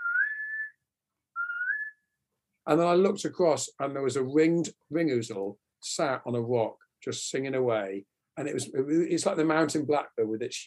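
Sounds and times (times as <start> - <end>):
person whistling imitation of golden plover call: 0.0 - 0.8, 1.4 - 2.0
speech: 2.6 - 10.6.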